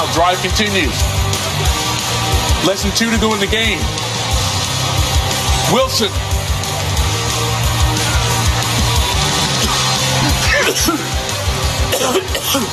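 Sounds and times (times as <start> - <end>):
crowd noise at a Seahawks football game: 0.0 - 11.9
speech: 0.2 - 1.8, 2.6 - 4.0, 5.7 - 6.2, 10.8 - 11.2, 12.0 - 12.7
harsh coughing and throat clearing: 9.6 - 11.2, 11.9 - 12.7.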